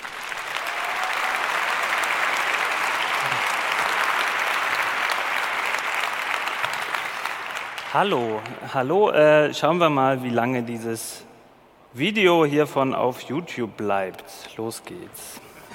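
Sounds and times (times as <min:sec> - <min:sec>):
applause welcoming a speaker: 0:00.0 - 0:09.0
speech: 0:07.9 - 0:11.3, 0:11.9 - 0:15.5.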